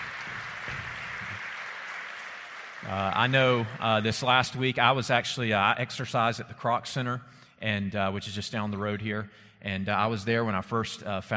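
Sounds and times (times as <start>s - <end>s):
audience applause: 0.0s - 4.4s
speech: 2.9s - 11.3s.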